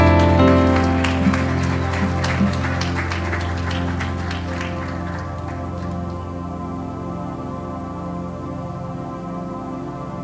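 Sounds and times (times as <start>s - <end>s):
audience applause: 0.0s - 6.3s.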